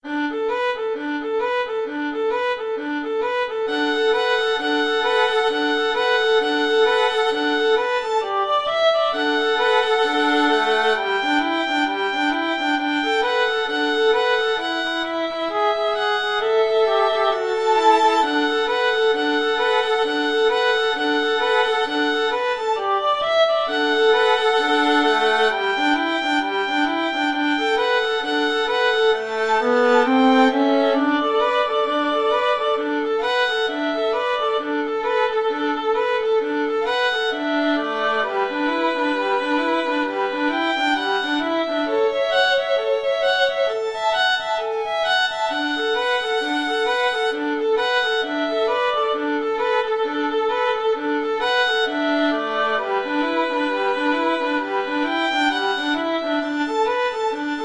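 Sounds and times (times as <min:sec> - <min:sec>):
boogie violin duet: 0:00.0 - 0:57.6.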